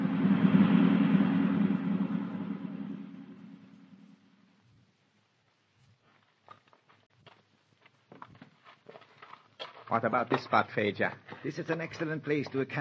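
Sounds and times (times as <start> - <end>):
car driving fast along a winding mountain road: 0.0 - 4.7
speech: 9.9 - 12.7.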